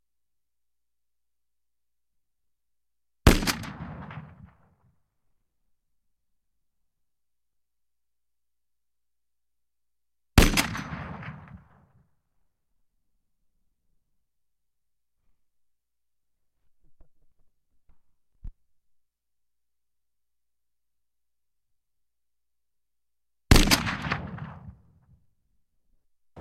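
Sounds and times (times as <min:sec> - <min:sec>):
Browning 82 pistol: 0:03.3 - 0:04.8, 0:10.4 - 0:12.0, 0:23.5 - 0:24.9.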